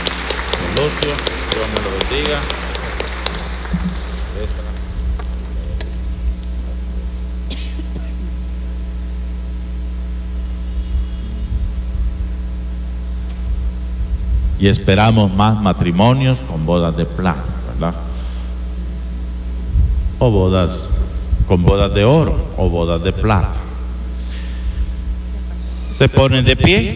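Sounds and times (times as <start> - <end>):
audience applause: 0.0 - 5.8
steady low electrical hum: 0.0 - 26.9
speech: 0.8 - 2.6, 3.7 - 4.7, 14.6 - 18.0, 20.2 - 23.6, 26.0 - 26.9.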